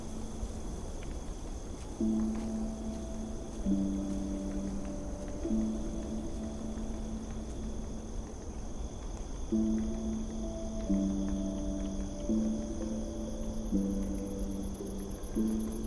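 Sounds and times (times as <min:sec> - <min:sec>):
ambient fantasy music: 0:00.0 - 0:15.8
forest at night: 0:00.0 - 0:15.8.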